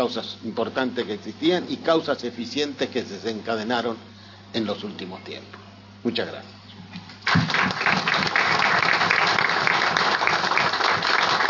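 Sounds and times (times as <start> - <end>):
speech: 0.0 - 6.6, 7.3 - 7.6
applause: 7.2 - 11.4.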